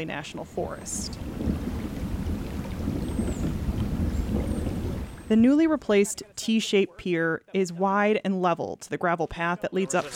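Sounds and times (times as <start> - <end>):
speech: 0.0 - 1.6, 5.3 - 10.1
distant thunder rumbling: 0.6 - 5.7.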